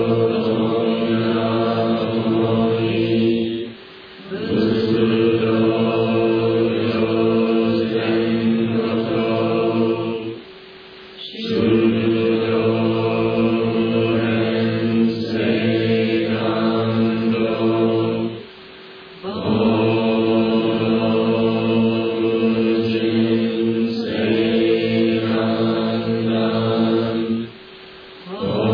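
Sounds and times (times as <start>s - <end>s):
end chant: 0.0s - 10.4s, 11.1s - 18.5s, 19.2s - 27.6s, 28.2s - 28.7s.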